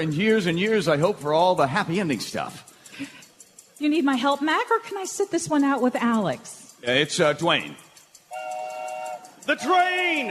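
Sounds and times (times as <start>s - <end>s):
speech: 0.0s - 3.2s, 3.8s - 7.8s, 9.5s - 10.2s
train whistle blast: 8.3s - 10.2s.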